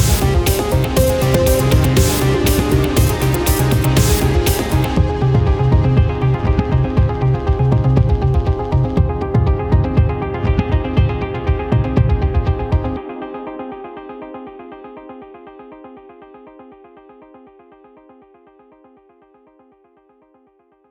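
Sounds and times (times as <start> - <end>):
full instrumental music: 0.0 - 15.3.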